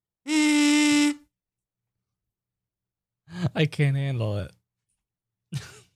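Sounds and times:
kazoo being hummed into: 0.3 - 1.2
speech: 3.5 - 4.6.

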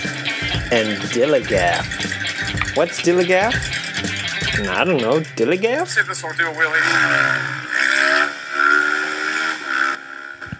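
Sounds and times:
motorcycle engine revving as the bike pulls a wheelie: 0.0 - 10.5
speech: 0.5 - 2.1, 2.8 - 3.8, 4.6 - 7.5.

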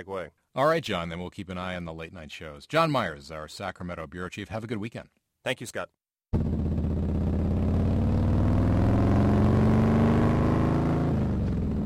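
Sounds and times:
speech: 0.0 - 6.5
pack of Harley-Davidson motorcycles roaring by on a summer road trip in California: 6.4 - 11.8.

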